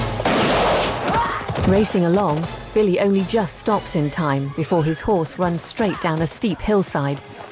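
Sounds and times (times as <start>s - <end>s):
gunshots in a western film from a mountain vantage point: 0.2s - 2.2s
speech: 1.7s - 7.3s.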